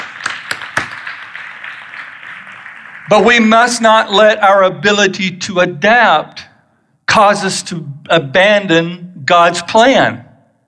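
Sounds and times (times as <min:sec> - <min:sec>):
audience applause: 0:00.0 - 0:03.3
speech: 0:03.1 - 0:06.5, 0:07.2 - 0:10.2.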